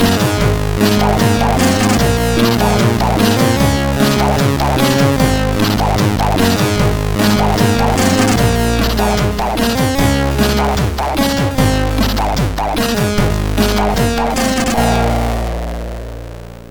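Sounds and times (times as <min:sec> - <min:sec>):
chiptune music intro on a MOS6581R3 SID chip: 0:00.0 - 0:16.1.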